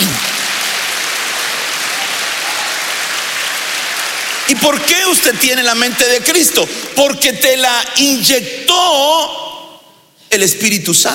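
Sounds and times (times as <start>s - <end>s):
audience clapping: 0.0s - 7.6s
speech: 4.5s - 9.4s, 10.3s - 11.1s.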